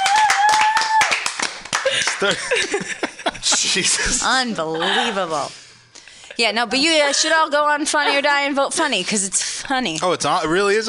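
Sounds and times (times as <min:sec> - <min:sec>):
whoops and cheering voices: 0:00.0 - 0:01.3
crowd clapping: 0:00.0 - 0:02.7
laughter: 0:01.8 - 0:05.5
speech: 0:02.2 - 0:05.6, 0:06.4 - 0:10.8.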